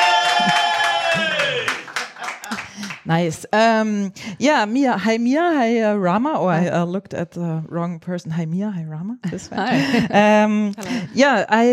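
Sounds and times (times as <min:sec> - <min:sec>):
laughter: 0:00.0 - 0:02.9, 0:09.3 - 0:10.3
studio applause hand claps: 0:00.0 - 0:03.1
speech: 0:03.1 - 0:11.7.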